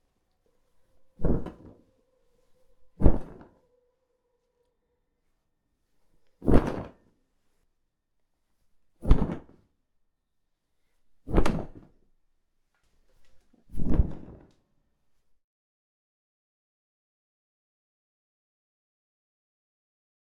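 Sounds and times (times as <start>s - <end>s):
large wings and superhero cape flapping foley: 1.2s - 1.9s, 3.0s - 3.6s, 6.4s - 7.0s, 9.0s - 9.5s, 11.3s - 11.8s.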